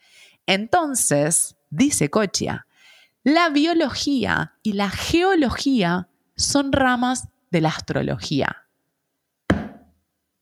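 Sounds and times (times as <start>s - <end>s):
speech: 0.5s - 8.6s
heavy thud: 9.5s - 9.9s.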